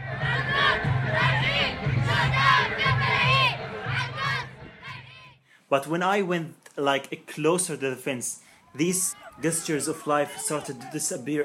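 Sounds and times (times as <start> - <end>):
crowd at a protest march shouting and chanting: 0.0 - 5.4, 8.6 - 11.4
speech: 5.7 - 11.4.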